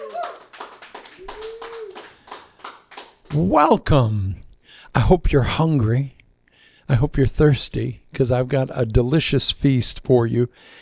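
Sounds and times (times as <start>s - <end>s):
rhythmic hand clapping from a church congregation: 0.0s - 3.6s
speech: 3.4s - 6.2s, 6.9s - 10.7s.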